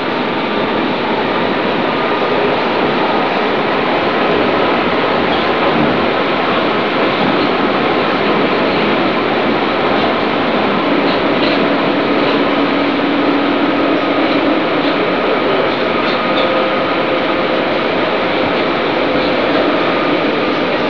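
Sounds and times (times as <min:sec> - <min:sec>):
U-Bahn subway train: 0:00.0 - 0:20.8.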